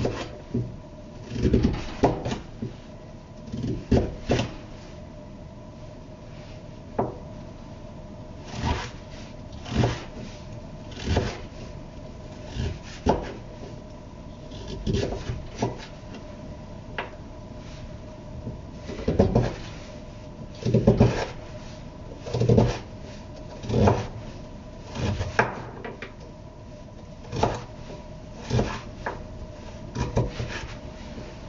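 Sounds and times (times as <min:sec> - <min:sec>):
faint steady hum: 0:00.0 - 0:31.4
knife chopping vegetables on a board for curry: 0:01.3 - 0:02.7, 0:03.5 - 0:04.6, 0:09.6 - 0:10.1, 0:11.0 - 0:11.5, 0:12.5 - 0:13.4, 0:14.5 - 0:15.9, 0:18.9 - 0:19.6, 0:20.6 - 0:21.4, 0:22.2 - 0:22.9, 0:23.6 - 0:24.2, 0:24.9 - 0:25.9, 0:27.3 - 0:27.7, 0:28.4 - 0:29.2, 0:30.0 - 0:30.8.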